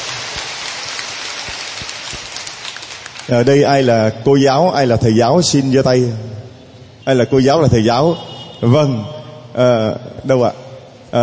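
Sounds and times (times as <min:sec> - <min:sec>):
crowd applauding: 0:00.0 - 0:03.5
speech: 0:03.3 - 0:06.4, 0:07.1 - 0:11.2.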